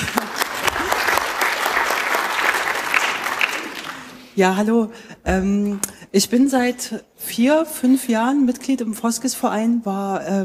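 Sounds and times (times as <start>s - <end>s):
audience clapping: 0.0s - 4.4s
speech: 4.4s - 10.4s.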